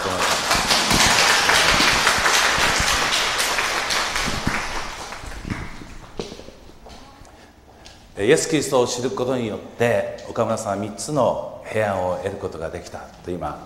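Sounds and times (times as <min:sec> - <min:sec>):
audience applause: 0:00.0 - 0:06.5
speech: 0:08.2 - 0:13.6.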